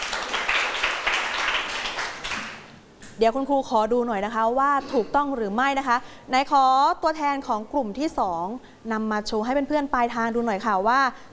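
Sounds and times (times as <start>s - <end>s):
group of students clapping: 0.0s - 2.7s
speech: 3.2s - 11.3s.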